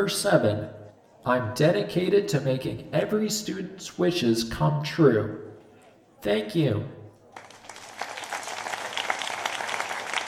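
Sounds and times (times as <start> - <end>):
speech: 0.0 - 5.5, 6.2 - 7.0
crowd clapping politely: 7.3 - 10.2.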